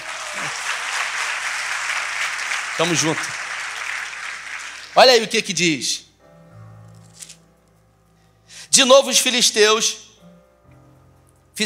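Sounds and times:
audience applause: 0.0s - 5.1s
speech: 2.8s - 3.4s, 5.0s - 6.1s, 8.8s - 10.0s.

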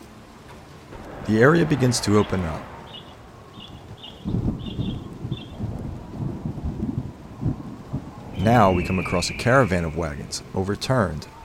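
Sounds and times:
rain falling: 0.0s - 11.4s
deep thunder rolling and rumbling: 0.6s - 9.4s
speech: 1.3s - 2.8s, 8.5s - 11.3s.

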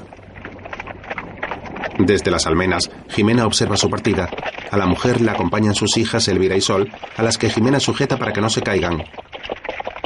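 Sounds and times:
breathy wind-like noise: 0.0s - 10.0s
horse hooves walking: 0.0s - 10.0s
speech: 2.0s - 9.2s.

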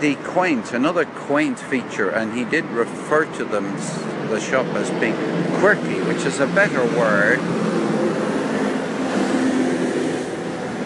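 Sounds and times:
speech: 0.0s - 7.7s
number 97 bus passing: 0.0s - 10.8s.

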